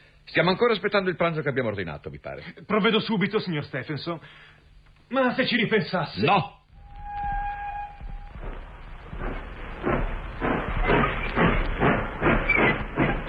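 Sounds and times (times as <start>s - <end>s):
speech: 0.3s - 6.6s
locomotive starting to move: 6.8s - 13.2s.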